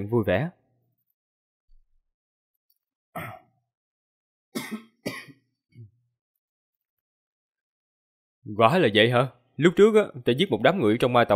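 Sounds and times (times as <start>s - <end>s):
speech: 0.0s - 0.6s, 8.5s - 11.3s
harsh coughs: 3.2s - 3.5s, 4.6s - 5.5s
soft low throat-clearing grunt: 3.2s - 3.5s.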